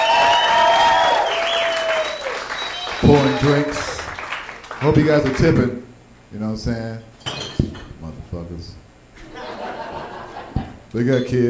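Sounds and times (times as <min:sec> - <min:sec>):
audience applause for bar staff: 0:00.0 - 0:05.4
sustained high whistle-like tone: 0:00.2 - 0:03.4
speech: 0:03.0 - 0:03.9, 0:04.8 - 0:07.1, 0:10.9 - 0:11.4
laughter: 0:09.2 - 0:10.8.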